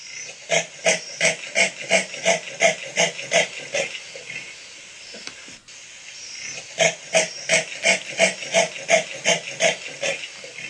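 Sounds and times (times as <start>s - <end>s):
common leopard sawing roar: 0.4s - 4.0s, 6.6s - 10.6s.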